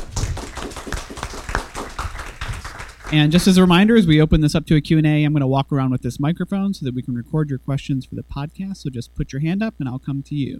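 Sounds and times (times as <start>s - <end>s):
audience round of applause: 0.0s - 3.7s
speech: 3.1s - 10.5s.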